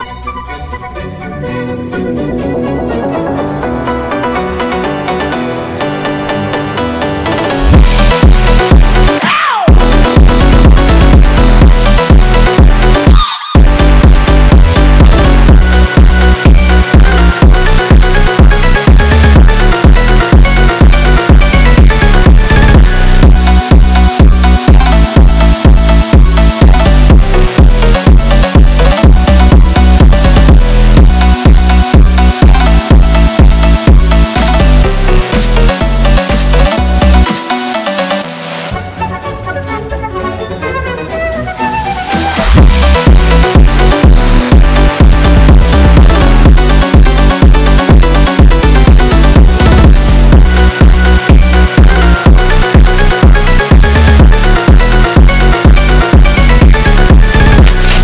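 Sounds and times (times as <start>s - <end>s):
phonk music: 0.0s - 58.0s.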